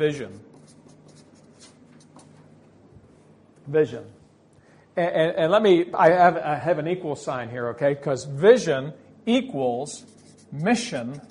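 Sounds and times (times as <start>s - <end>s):
speech: 0.0s - 0.5s, 3.7s - 4.2s, 5.0s - 11.2s
pen writing on a board: 0.4s - 2.3s, 10.0s - 11.2s.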